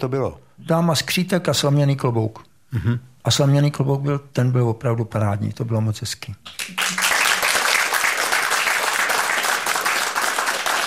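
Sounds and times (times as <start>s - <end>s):
speech: 0.0s - 7.0s
audience applause: 6.5s - 10.8s.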